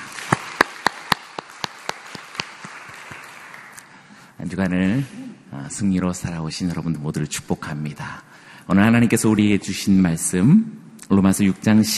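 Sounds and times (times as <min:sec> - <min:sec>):
audience applause: 0:00.0 - 0:03.9
speech: 0:04.4 - 0:11.9.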